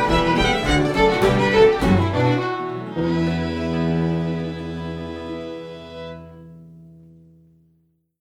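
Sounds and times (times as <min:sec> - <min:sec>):
fiddle: 0:00.0 - 0:06.5.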